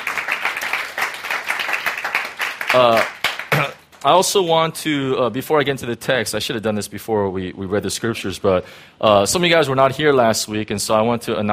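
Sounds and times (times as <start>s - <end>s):
audience clapping to welcome a guest: 0.0s - 4.1s
speech: 2.7s - 3.2s, 4.0s - 11.5s.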